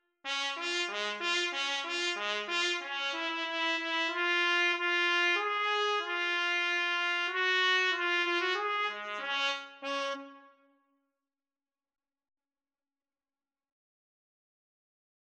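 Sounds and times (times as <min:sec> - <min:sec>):
trumpet melody: 0:00.2 - 0:10.6.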